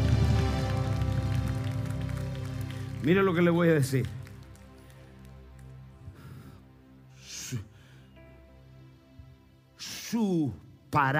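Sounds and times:
audience applause: 0.0 - 5.8
speech: 3.0 - 4.2, 10.1 - 11.1.

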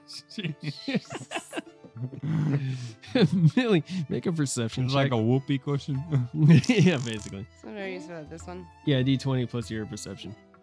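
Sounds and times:
speech: 0.1 - 1.4, 2.0 - 10.5
laughter: 0.1 - 7.4
person imitating snoring with voice: 2.0 - 3.0, 6.6 - 7.4.

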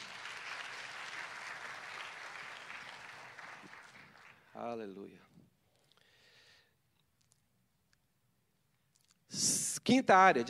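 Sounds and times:
audience applause: 0.0 - 4.6
speech: 4.6 - 5.3, 9.9 - 10.4.

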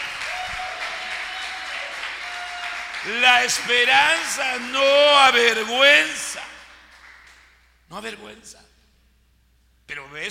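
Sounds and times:
audience applause: 0.0 - 6.0
speech: 3.0 - 6.5, 7.9 - 8.7, 9.9 - 10.2.

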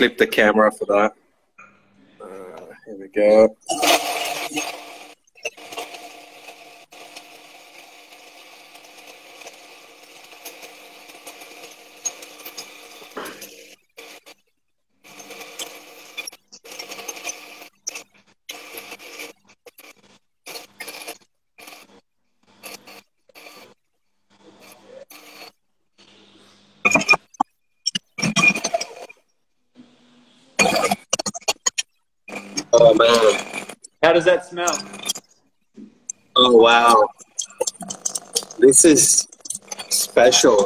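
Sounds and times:
speech: 0.0 - 1.2, 2.9 - 4.8, 34.3 - 35.0, 36.4 - 37.1, 38.6 - 39.3, 40.2 - 40.6
coffee grinder grinding coffee: 3.3 - 14.4, 15.0 - 23.8, 26.8 - 29.1, 30.6 - 35.3, 36.1 - 40.6.

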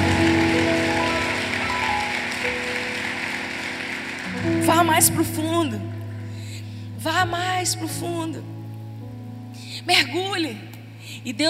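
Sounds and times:
audience applauding in a large room: 0.0 - 5.6
speech: 5.0 - 6.0, 7.0 - 8.5, 9.8 - 11.4.

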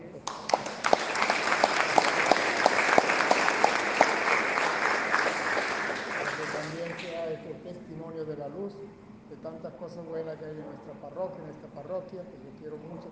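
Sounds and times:
audience applause: 0.3 - 7.2
speech: 9.4 - 13.1.

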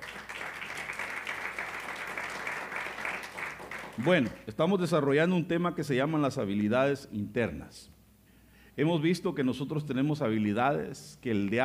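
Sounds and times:
audience applause: 0.0 - 4.3
speech: 4.0 - 8.0, 8.8 - 11.6.

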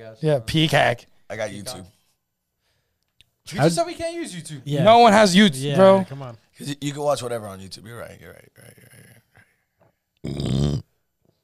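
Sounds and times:
speech: 0.0 - 2.0, 3.5 - 9.2, 10.2 - 10.8
person burping into the microphone: 10.2 - 11.0.

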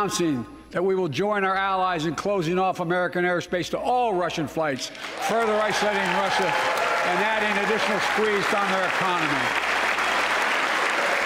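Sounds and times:
speech: 0.0 - 9.7
audience clapping: 4.9 - 11.2.

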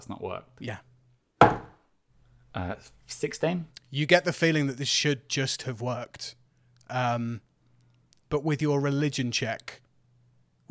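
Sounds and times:
speech: 0.0 - 1.5, 2.6 - 7.5, 8.3 - 9.8
firm knock on a wooden door: 1.4 - 1.8.

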